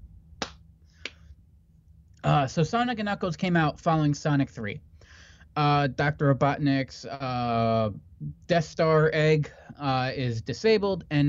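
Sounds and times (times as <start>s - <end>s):
hands clapping: 0.4s - 1.2s
speech: 2.2s - 4.9s, 5.6s - 11.2s.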